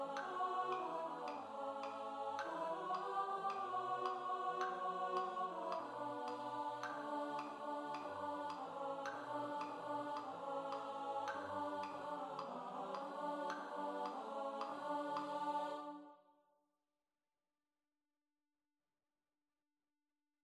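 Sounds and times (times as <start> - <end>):
alto study: 0.0 - 16.1.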